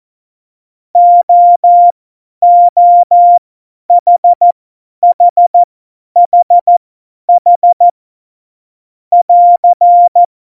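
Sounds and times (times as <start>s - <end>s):
CW morse code beeps: 1.0s - 7.9s, 9.2s - 10.3s.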